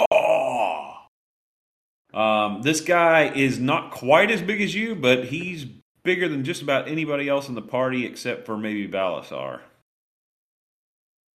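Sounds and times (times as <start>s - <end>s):
person voicing a wailing roar: 0.0s - 1.1s
speech: 2.1s - 9.7s.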